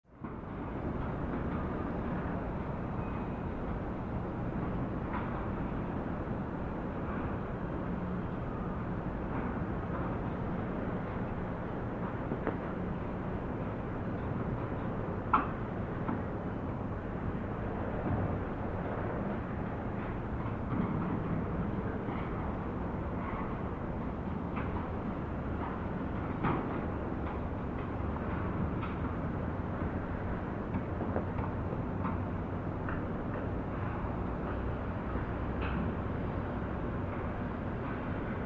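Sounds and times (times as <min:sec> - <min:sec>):
outdoor city noise: 0:00.0 - 0:38.4.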